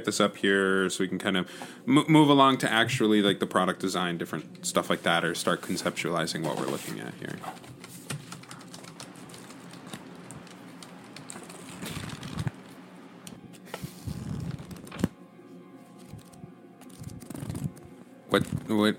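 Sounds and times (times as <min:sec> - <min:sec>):
speech: 0:00.0 - 0:07.8, 0:18.7 - 0:18.9
pages of a manual flipped at a work table: 0:06.5 - 0:15.2, 0:15.8 - 0:18.9.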